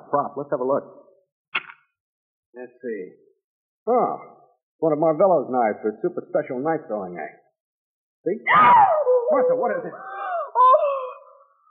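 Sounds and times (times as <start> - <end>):
speech: 0.1 - 1.1, 2.5 - 7.4, 8.2 - 10.7
woman screaming in terror: 8.5 - 9.3, 10.0 - 11.5.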